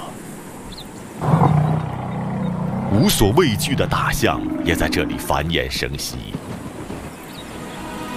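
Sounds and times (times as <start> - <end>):
lion roaring: 1.2 - 5.5
speech: 3.0 - 6.6.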